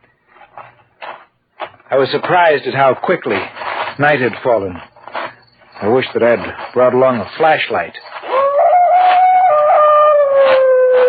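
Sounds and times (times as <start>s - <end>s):
speech: 1.9s - 4.9s, 5.8s - 8.0s
distant dog howling across a lake: 8.2s - 11.0s.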